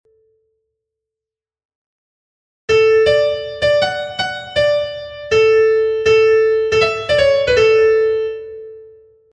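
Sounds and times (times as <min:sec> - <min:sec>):
piano: 0:02.7 - 0:09.3.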